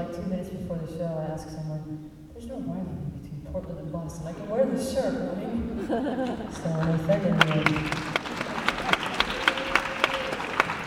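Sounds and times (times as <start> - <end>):
speech: 0.2 - 8.2
laughter: 4.4 - 10.8
audience applause: 6.5 - 10.8.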